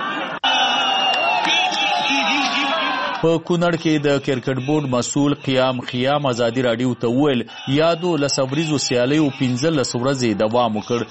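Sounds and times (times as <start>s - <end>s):
cricket fans shouting and cheering at final matches in Kunar's central stadium: 0.0s - 11.1s
speech: 3.2s - 11.1s.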